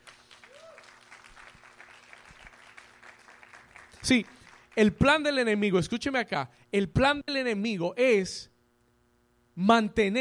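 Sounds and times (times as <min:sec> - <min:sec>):
audience applause: 0:00.0 - 0:04.8
speech: 0:04.0 - 0:08.5, 0:09.6 - 0:10.1.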